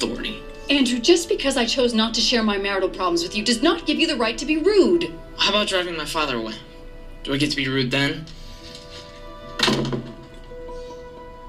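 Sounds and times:
faint sustained tones: 0.0 - 11.4
speech: 0.7 - 8.4
door slamming in a TV drama scene: 9.5 - 10.4.

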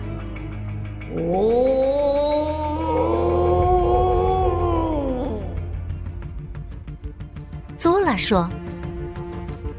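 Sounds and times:
speech: 1.1 - 1.6, 8.2 - 8.6
long terrifying monster cry from cave: 1.1 - 6.0.

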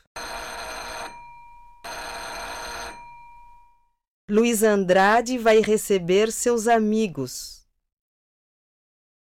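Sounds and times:
doorbell ringing: 0.2 - 4.0
speech: 4.3 - 7.6.

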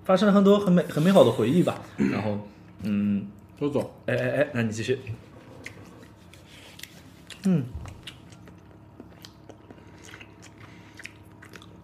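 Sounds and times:
speech: 0.1 - 5.3, 7.4 - 7.8
chewing food: 5.5 - 11.8.

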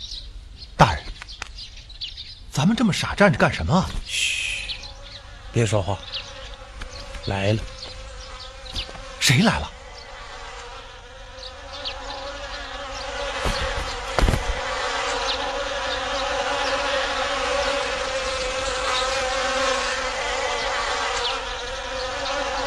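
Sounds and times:
bees buzzing: 2.1 - 22.6
speech: 2.6 - 4.3, 5.5 - 6.2, 7.2 - 7.7, 9.3 - 9.8
rustling burst: 13.3 - 15.2.

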